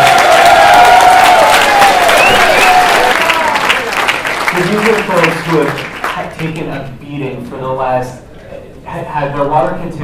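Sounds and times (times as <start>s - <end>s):
audience applause: 0.0s - 6.3s
speech: 6.4s - 8.3s, 8.9s - 10.0s.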